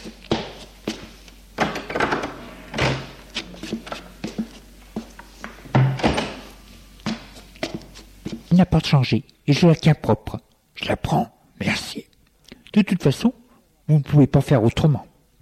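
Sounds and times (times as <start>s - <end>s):
bedroom door being opened: 1.6s - 3.2s, 5.7s - 6.5s
speech: 8.6s - 12.1s, 12.8s - 15.1s.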